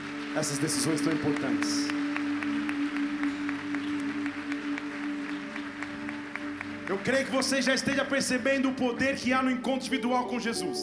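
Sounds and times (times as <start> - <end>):
audience applause: 0.0 - 8.7
sustained low musical tone: 0.0 - 10.8
speech: 0.4 - 2.2, 7.0 - 10.8.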